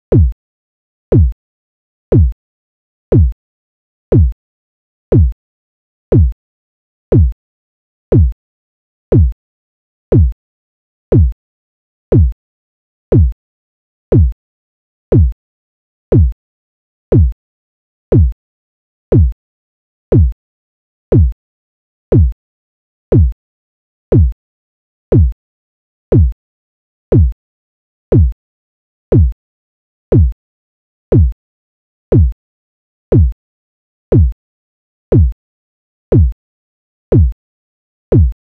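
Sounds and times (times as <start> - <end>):
kick drum: 0.0 - 0.4, 1.1 - 1.4, 2.1 - 2.4, 3.1 - 3.4, 4.1 - 4.4, 5.1 - 5.4, 6.1 - 6.4, 7.1 - 7.4, 8.1 - 8.4, 9.1 - 9.4, 10.1 - 10.4, 11.1 - 11.4, 12.1 - 12.4, 13.1 - 13.4, 14.1 - 14.4, 15.1 - 15.4, 16.1 - 16.4, 17.1 - 17.4, 18.1 - 18.4, 19.1 - 19.4, 20.1 - 20.4, 21.1 - 21.4, 22.1 - 22.4, 23.1 - 23.4, 24.1 - 24.4, 25.1 - 25.4, 26.1 - 26.4, 27.1 - 27.4, 28.1 - 28.4, 29.1 - 29.4, 30.1 - 30.4, 31.1 - 31.4, 32.1 - 32.4, 33.1 - 33.4, 34.1 - 34.4, 35.1 - 35.4, 36.1 - 36.4, 37.1 - 37.4, 38.1 - 38.3.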